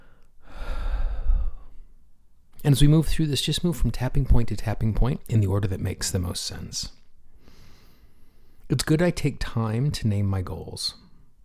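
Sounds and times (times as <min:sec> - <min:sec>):
person taking a deep breath during a hand-tapping exercise: 0:00.0 - 0:01.8, 0:07.3 - 0:08.6
speech: 0:02.6 - 0:07.0, 0:08.7 - 0:11.0.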